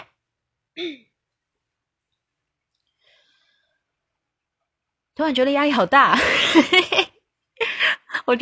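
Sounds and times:
person clearing their throat at home: 0.8s - 1.1s
speech: 0.8s - 1.1s, 5.2s - 7.1s
laughter: 6.2s - 7.1s.

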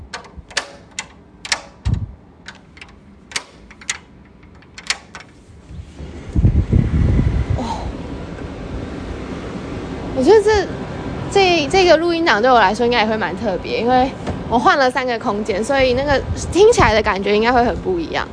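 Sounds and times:
door lock clicking and clacking: 0.0s - 5.4s
steady low rumbling wind-like noise: 0.0s - 18.3s
speech: 10.2s - 18.3s.

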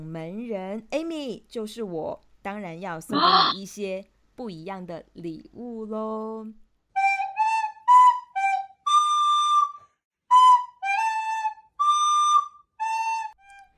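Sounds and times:
speech: 0.0s - 6.6s
flute melody played by a boy: 7.0s - 13.7s.

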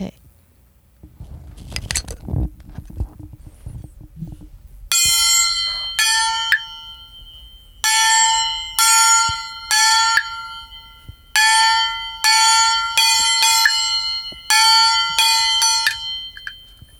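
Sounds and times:
nanguan jiaoluo small gong ringing: 4.9s - 16.9s.

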